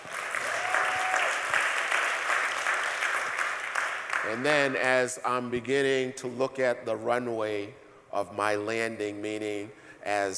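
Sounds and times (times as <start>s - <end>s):
audience clapping: 0.0s - 4.8s
speech: 4.2s - 10.3s.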